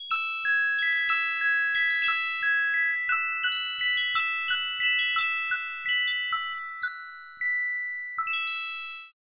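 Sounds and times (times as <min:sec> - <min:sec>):
magical music box melody: 0:00.0 - 0:09.2.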